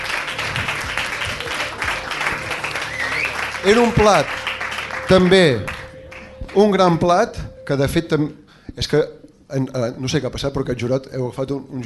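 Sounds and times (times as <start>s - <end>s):
audience applause: 0.0s - 6.6s
speech: 3.6s - 4.5s, 5.1s - 5.8s, 6.6s - 11.8s.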